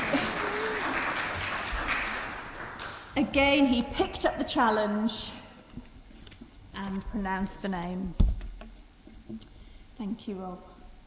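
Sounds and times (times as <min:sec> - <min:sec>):
round of applause: 0:00.0 - 0:03.0
speech: 0:03.2 - 0:05.4, 0:06.9 - 0:08.3, 0:09.3 - 0:10.8.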